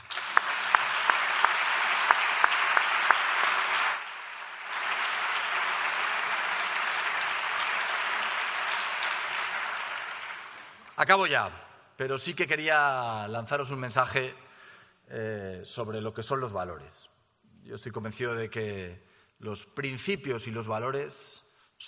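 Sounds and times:
audience applause: 0.0 - 10.9
speech: 11.0 - 14.4, 15.1 - 17.1, 17.7 - 21.8.

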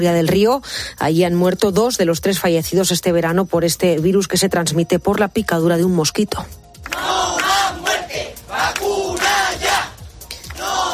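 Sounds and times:
speech: 0.0 - 7.1
crowd of residents protesting in the street: 6.8 - 10.9.

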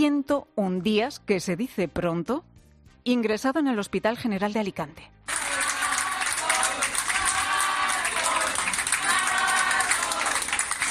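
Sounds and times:
speech: 0.0 - 5.5
doctors and nurses applauding: 5.3 - 10.8
doctors and nurses chanting a name: 5.3 - 10.8.

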